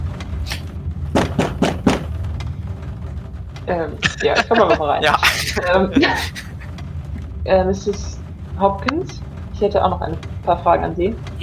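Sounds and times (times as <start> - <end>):
low steady hum: 0.0 - 11.4
firm knocking on a door: 1.2 - 2.1
speech: 3.7 - 6.5, 7.4 - 11.4
laughter: 3.7 - 6.7.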